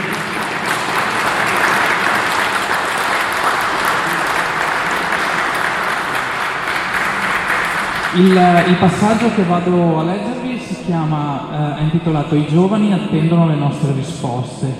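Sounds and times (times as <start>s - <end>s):
audience applause: 0.0s - 9.8s
speech: 8.2s - 14.7s.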